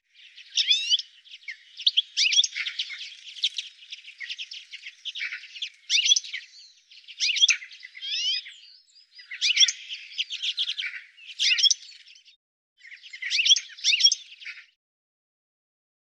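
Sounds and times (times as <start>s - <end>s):
bird giving brisk chattering chirps: 0.2s - 12.0s, 12.9s - 14.6s.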